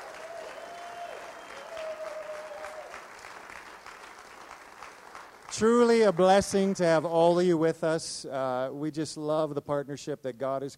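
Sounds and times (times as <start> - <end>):
church congregation applauding a visiting group: 0.0 - 7.1
speech: 5.6 - 10.7.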